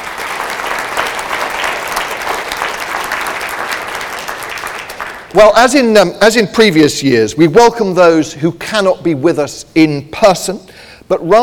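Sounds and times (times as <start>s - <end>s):
audience applause: 0.0s - 5.4s
speech: 5.3s - 11.4s.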